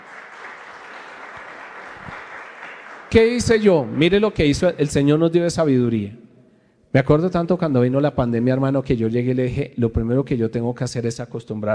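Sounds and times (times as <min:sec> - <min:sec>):
applause: 0:00.0 - 0:04.1
speech: 0:03.1 - 0:06.2, 0:06.9 - 0:11.7.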